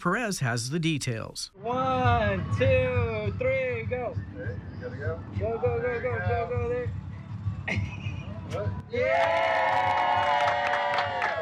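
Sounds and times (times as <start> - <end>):
speech: 0.0 - 7.0, 7.7 - 10.4
cheering at a ribbon cutting: 8.8 - 11.3
applause at a ribbon cutting: 8.9 - 11.3.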